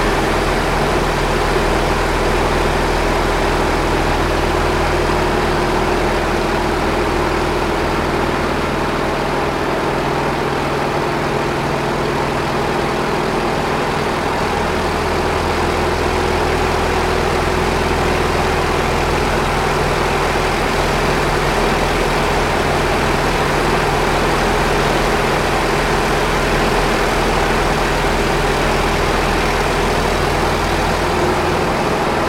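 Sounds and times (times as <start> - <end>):
T-28D Trojan airplane flying heard from interior: 0.0 - 32.2.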